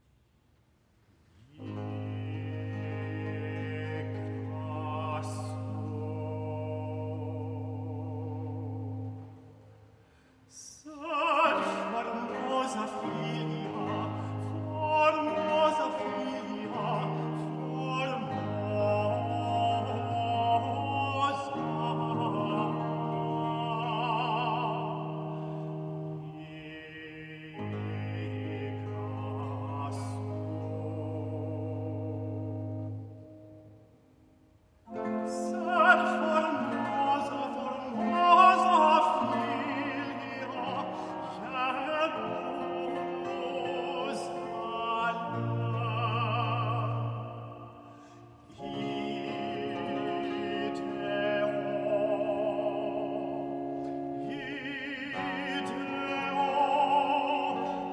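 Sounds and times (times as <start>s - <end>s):
solo voice singing a motet: 1.5s - 9.7s, 10.5s - 33.4s, 34.9s - 57.9s.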